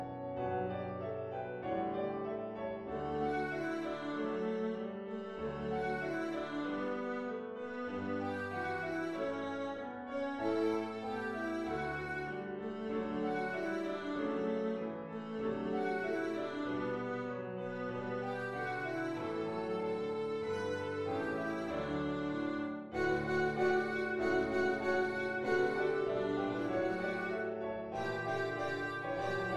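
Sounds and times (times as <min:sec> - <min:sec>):
Christmas song: 0:00.1 - 0:29.5.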